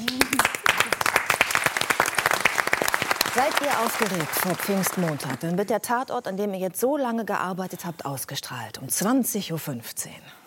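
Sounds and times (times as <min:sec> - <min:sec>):
studio audience applause: 0:00.0 - 0:05.6
speech: 0:03.4 - 0:10.4.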